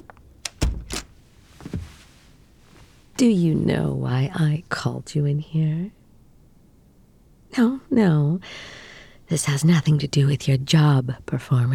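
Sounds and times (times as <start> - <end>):
door swinging shut: 0.0 - 2.1
sharp door latch click: 0.4 - 1.2
soft knocks of door settling: 0.5 - 2.0
speech: 3.2 - 6.0, 7.6 - 11.7.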